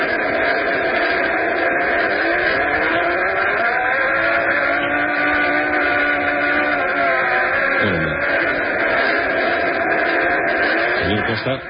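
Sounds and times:
engine-like drone in a Mars recording: 0.0s - 11.6s
whining tones in a Mars recording: 0.0s - 11.6s.

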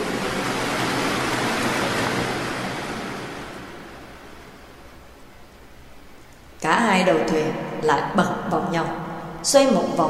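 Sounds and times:
large waves crashing: 0.0s - 5.4s
speech: 7.0s - 10.0s.

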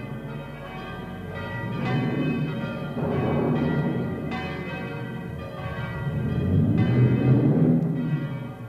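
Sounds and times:
church bells ringing storm warning in Schelmberg: 0.0s - 8.6s
thunder: 1.6s - 4.5s, 5.6s - 8.4s.

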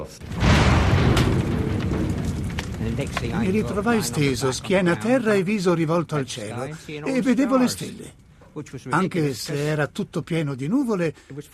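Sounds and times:
speech: 0.0s - 0.4s, 2.8s - 11.5s
huge explosion of a plane crashing into trees: 0.0s - 5.9s
loud dense low roar and rumble: 0.2s - 4.8s.

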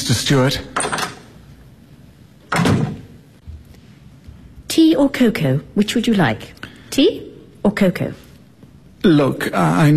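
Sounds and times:
speech: 0.1s - 1.0s, 5.0s - 8.2s, 9.0s - 9.9s
back door opening and closing: 0.7s - 1.3s, 2.4s - 3.2s.

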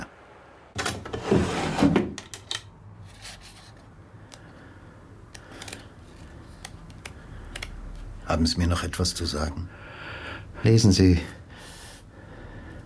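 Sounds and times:
drawer being opened: 0.8s - 2.6s
speech: 8.4s - 10.0s, 10.6s - 11.4s.

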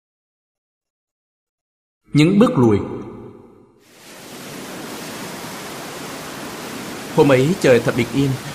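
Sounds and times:
speech: 2.1s - 3.0s, 7.2s - 8.5s
ocean waves washing onto a white sandy beach: 3.9s - 8.5s.

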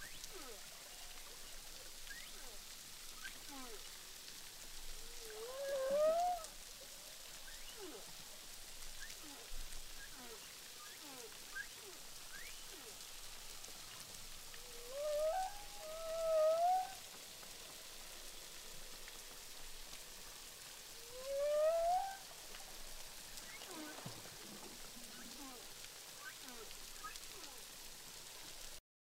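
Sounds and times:
humpback whale song recorded underwater with a hydrophone at Boucan Canot, Réunion Island: 5.2s - 6.5s, 14.7s - 17.0s, 21.0s - 22.2s.

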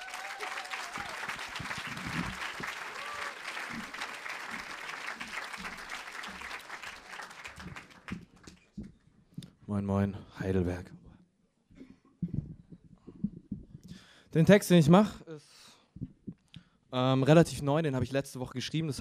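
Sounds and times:
scattered cheers: 0.0s - 4.8s
comedy or spoken-word stage audience applause: 0.0s - 8.6s
speech: 9.7s - 11.0s, 14.4s - 15.2s, 17.0s - 18.9s.

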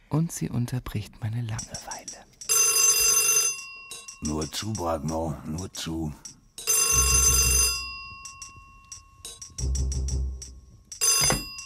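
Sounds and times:
speech: 0.2s - 2.3s, 4.2s - 7.7s
telephone bell ringing: 2.5s - 4.2s, 6.7s - 9.2s, 11.0s - 11.6s.

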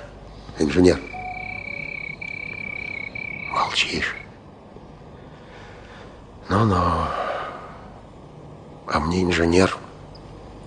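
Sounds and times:
speech: 0.6s - 1.1s, 3.8s - 4.2s, 6.5s - 7.2s, 8.9s - 9.8s
grasshoppers chirping: 0.6s - 4.4s
frogs croaking: 0.6s - 4.5s.

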